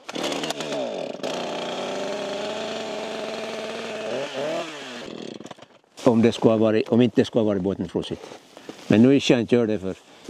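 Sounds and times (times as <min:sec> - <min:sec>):
chainsaw starting and running: 0:00.0 - 0:05.8
speech: 0:06.1 - 0:10.1.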